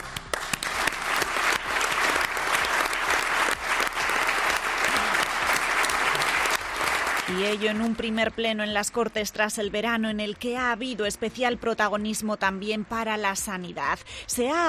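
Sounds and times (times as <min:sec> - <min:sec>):
long applause in parliament chamber: 0:00.0 - 0:07.8
speech: 0:07.4 - 0:14.6.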